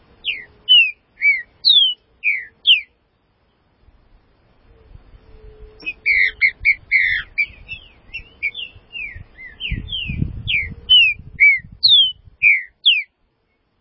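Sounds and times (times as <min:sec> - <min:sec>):
green-winged saltator whistling song: 0:00.2 - 0:03.0, 0:05.5 - 0:13.1.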